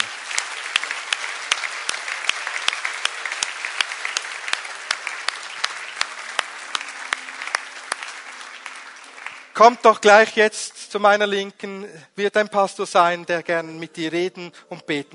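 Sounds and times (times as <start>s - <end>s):
audience applause: 0.0s - 9.9s
speech: 9.6s - 15.1s.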